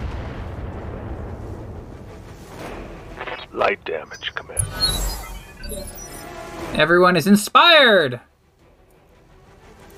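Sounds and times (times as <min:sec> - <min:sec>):
rumble of long-range missile explosions striking a Locust mech in a video game: 0:00.0 - 0:06.9
speech: 0:03.6 - 0:08.3.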